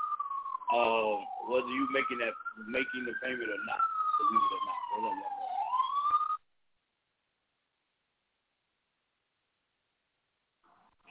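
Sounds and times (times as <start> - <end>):
emergency siren wail: 0.0 - 6.4
speech: 0.7 - 5.5.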